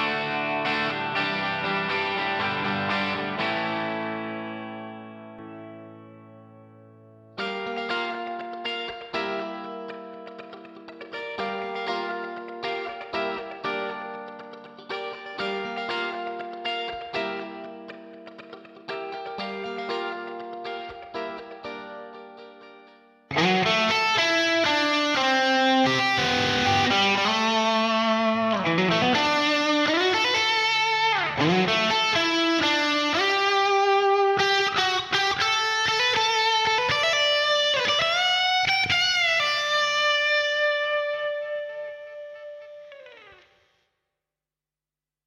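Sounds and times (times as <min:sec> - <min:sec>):
guitar: 0:00.0 - 0:43.9.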